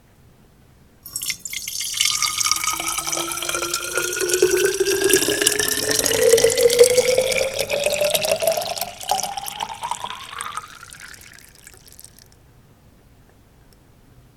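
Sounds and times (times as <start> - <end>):
water pouring: 1.0 - 12.3.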